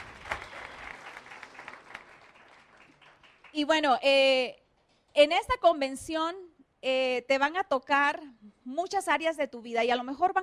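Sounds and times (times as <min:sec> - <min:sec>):
audience applause: 0:00.0 - 0:03.5
speech: 0:03.6 - 0:04.6, 0:05.2 - 0:10.4.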